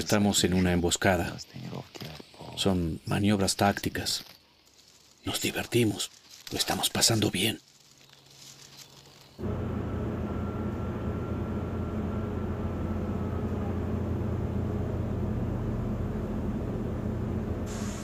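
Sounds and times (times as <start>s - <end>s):
speech: 0.1s - 4.4s, 5.2s - 7.7s, 9.4s - 9.6s
cabin of a military aircraft in flight: 9.4s - 18.0s.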